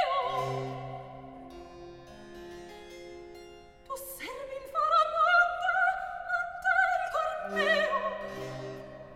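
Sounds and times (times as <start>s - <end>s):
recitative singing: 0.0s - 1.6s, 4.0s - 9.1s.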